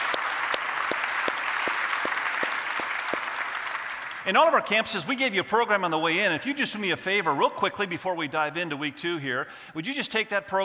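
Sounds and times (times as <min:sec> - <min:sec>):
audience applause welcoming campuses: 0:00.0 - 0:04.2
speech: 0:04.2 - 0:10.6.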